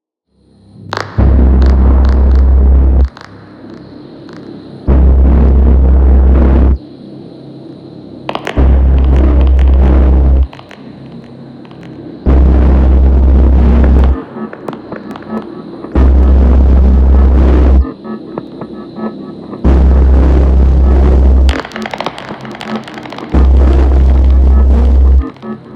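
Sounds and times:
spooky techno music: 0.9 - 6.9, 8.3 - 25.7.

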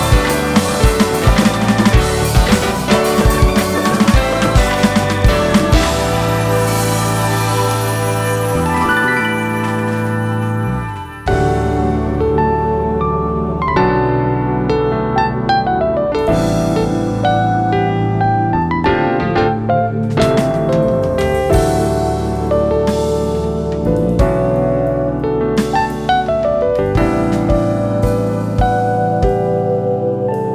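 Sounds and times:
live drums: 0.0 - 12.0, 20.1 - 29.7
piano: 0.0 - 30.5.

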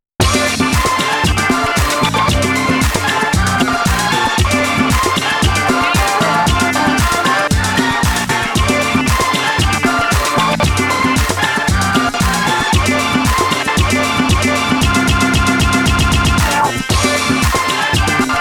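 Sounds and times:
lofi synth groove: 0.2 - 18.3.

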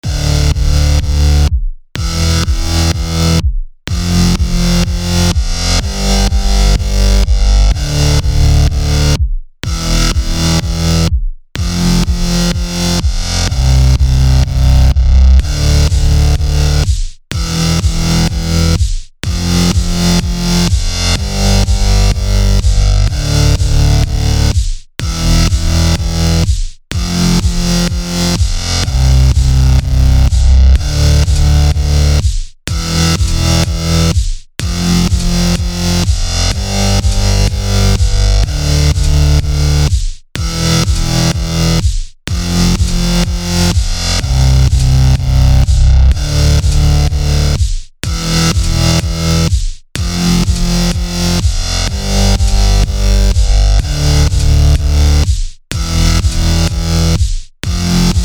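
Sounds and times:
electro test music: 0.0 - 57.2.

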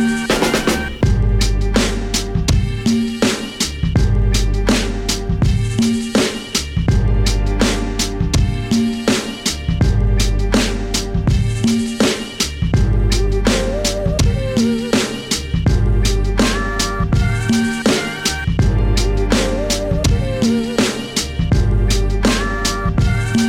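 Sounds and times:
boom bap beat: 0.1 - 23.4.

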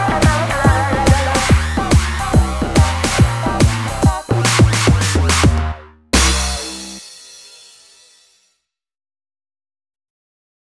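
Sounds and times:
future bass blues music: 0.0 - 7.0.

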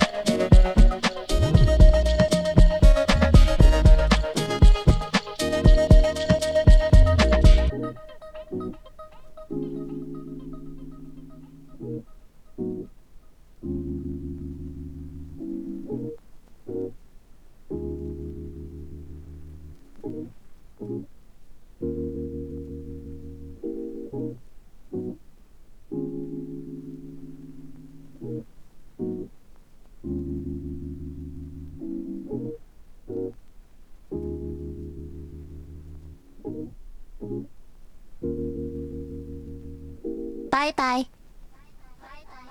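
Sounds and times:
anime music drop: 0.0 - 7.8.

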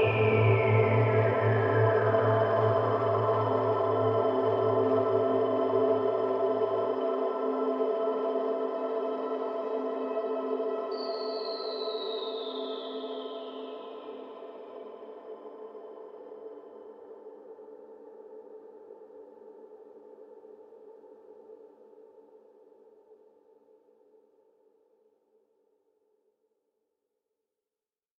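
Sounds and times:
ambient music: 0.0 - 17.4.

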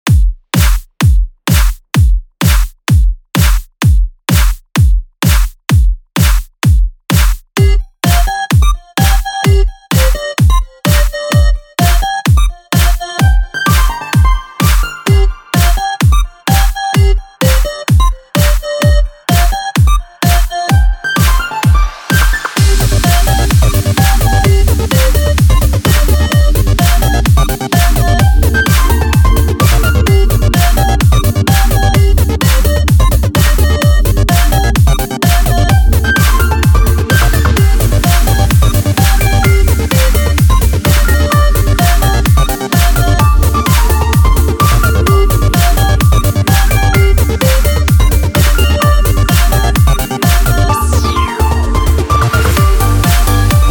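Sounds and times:
kick drum: 0.0 - 53.6.

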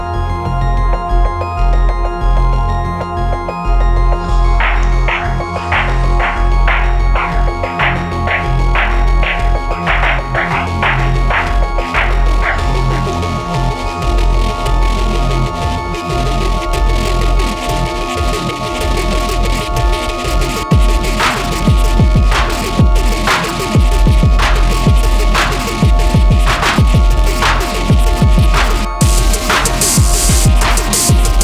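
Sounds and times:
wildly overdriven electronics rhythmic industrial noise: 0.2 - 31.4.

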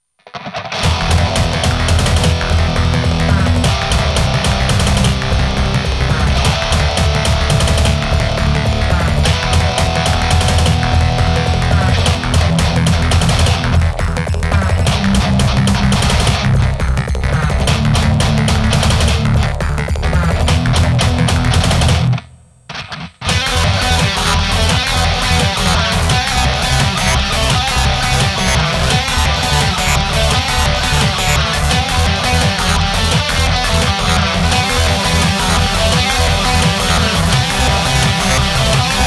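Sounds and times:
guitar with LSDJ mono chiptune metal: 0.2 - 39.0.

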